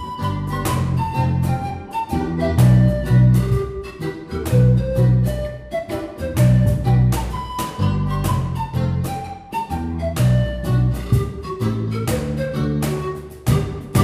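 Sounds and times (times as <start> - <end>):
reggae music: 0.0 - 14.0.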